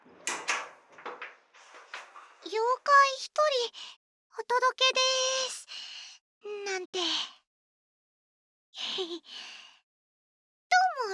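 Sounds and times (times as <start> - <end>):
auto-lock door being opened: 0.0 - 2.5
speech: 2.5 - 7.3, 8.8 - 9.6, 10.7 - 11.1.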